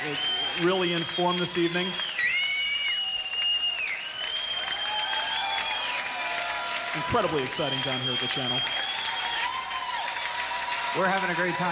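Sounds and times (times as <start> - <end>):
speech: 0.0 - 2.1, 7.0 - 8.9, 10.9 - 11.7
whistles and shouts: 0.0 - 6.2, 7.3 - 9.6
concert crowd cheering: 0.0 - 11.7.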